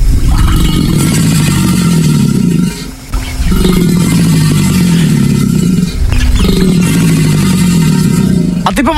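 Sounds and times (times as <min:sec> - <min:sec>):
American alligator bellowing: 0:00.0 - 0:08.9.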